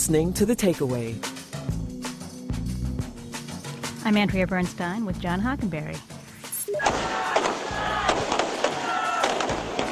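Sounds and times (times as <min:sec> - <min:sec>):
speech: 0:00.1 - 0:01.8, 0:04.0 - 0:06.1
firecrackers popping at a street celebration in Colombo: 0:06.8 - 0:09.9.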